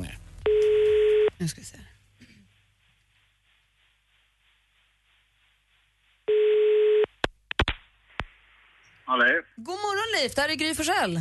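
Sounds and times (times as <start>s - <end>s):
steady telephone tone: 0.5s - 1.3s, 6.3s - 7.1s
speech: 1.4s - 2.0s, 9.1s - 11.2s.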